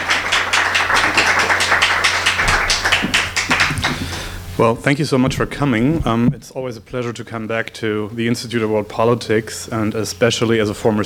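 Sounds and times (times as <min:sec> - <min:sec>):
crowd applauding with dense steady clapping: 0:00.0 - 0:04.3
speech: 0:04.6 - 0:11.0.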